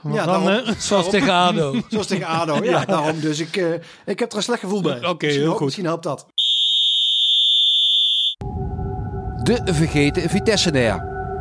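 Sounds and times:
laughter: 0.0s - 3.8s
speech: 0.0s - 6.3s, 9.4s - 11.1s
referee's half-time whistle blast: 6.4s - 8.4s.

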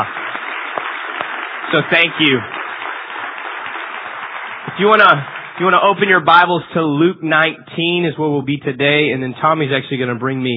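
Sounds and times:
crowd applause: 0.0s - 7.0s
speech: 1.7s - 2.6s, 4.8s - 10.5s.

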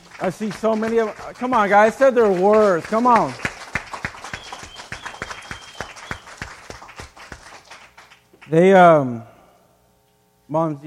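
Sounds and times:
audience applause: 0.0s - 8.5s
speech: 0.2s - 3.5s, 8.5s - 9.3s, 10.5s - 10.8s
faint whistles or cheers: 4.2s - 6.5s.

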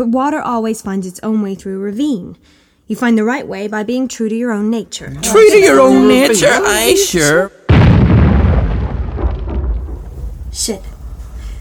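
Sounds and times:
speech: 0.0s - 7.6s, 10.6s - 10.9s
bomb explosion in Northern Ireland: 7.7s - 11.5s.

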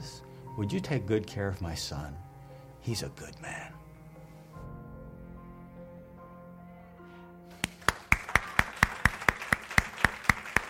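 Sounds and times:
speech: 0.6s - 3.8s
audience applause: 7.6s - 10.6s.

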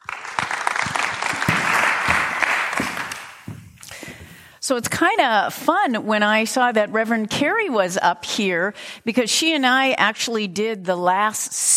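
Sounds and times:
audience applauding to welcome a reverend to the stage: 0.0s - 3.5s
speech: 4.7s - 11.7s.

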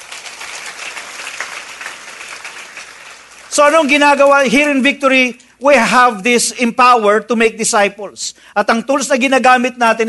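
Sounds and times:
church congregation applauding during a worship service: 0.0s - 5.2s
speech: 3.5s - 10.0s.

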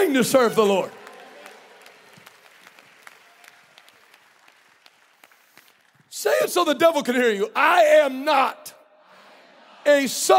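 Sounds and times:
audience applause: 0.0s - 6.1s
speech: 0.1s - 1.0s, 6.2s - 8.7s, 9.8s - 10.3s.

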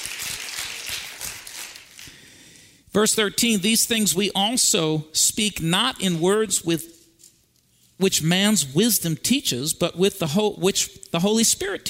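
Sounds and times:
audience hand clapping: 0.0s - 2.2s
speech: 2.9s - 7.0s, 8.0s - 11.8s.

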